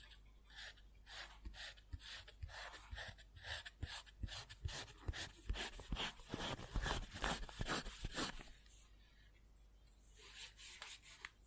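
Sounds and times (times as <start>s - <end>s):
pencil or pen scribbling on paper: 0.0s - 8.5s.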